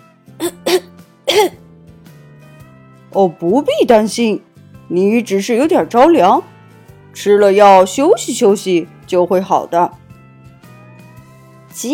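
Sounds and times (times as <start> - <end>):
coughing: 0.4 - 1.6
speech: 1.4 - 1.6, 3.2 - 6.5, 7.2 - 10.0, 11.8 - 11.9.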